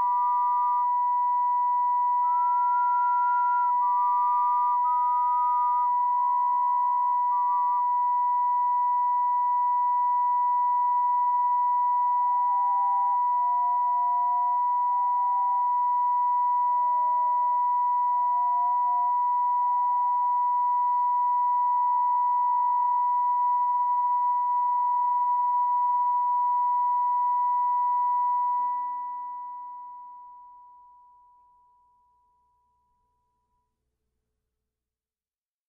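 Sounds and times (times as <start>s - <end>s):
e-bow whistling tone: 0.0s - 29.8s.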